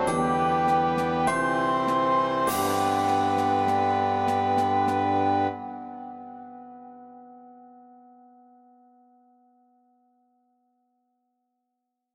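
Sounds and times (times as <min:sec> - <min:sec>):
recorder melody: 0:00.0 - 0:06.1.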